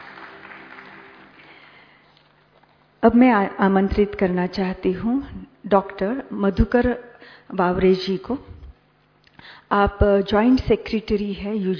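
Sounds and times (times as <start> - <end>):
audience applauding a guest speaker at a formal event: 0.0 - 2.1
speech: 3.0 - 8.6, 9.4 - 11.7.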